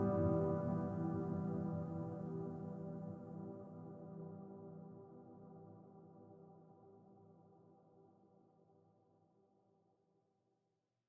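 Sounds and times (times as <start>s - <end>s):
piano sonata: 0.0s - 5.6s.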